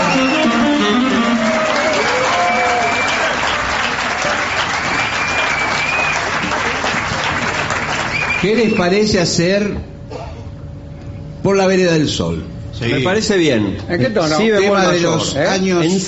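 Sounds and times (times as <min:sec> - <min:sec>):
audience applause: 0:00.0 - 0:08.8
faint voices and whoops: 0:01.4 - 0:03.5
speech: 0:08.4 - 0:09.9, 0:11.4 - 0:16.0.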